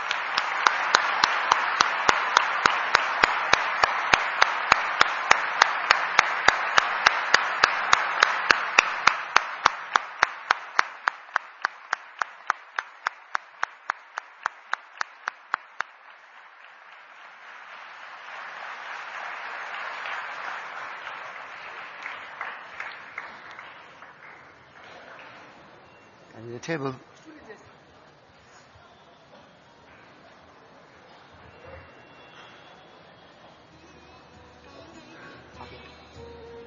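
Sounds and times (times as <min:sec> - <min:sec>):
audience applause and clapping: 0:00.0 - 0:25.8
speech: 0:26.7 - 0:27.1.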